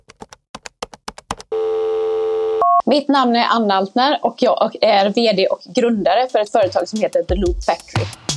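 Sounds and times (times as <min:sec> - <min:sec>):
steady unbroken phone line tone: 0:01.5 - 0:02.8
speech: 0:02.9 - 0:08.2.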